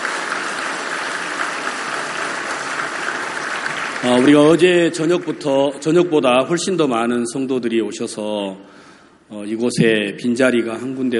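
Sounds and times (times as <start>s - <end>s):
audience applause: 0.0s - 5.8s
speech: 4.0s - 11.1s.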